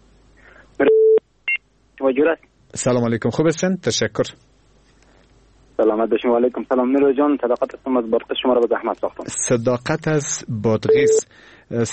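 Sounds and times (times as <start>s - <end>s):
steady mid-pitched telephone tone: 0.8s - 1.2s, 10.9s - 11.3s
speech: 2.0s - 4.6s, 5.8s - 11.9s.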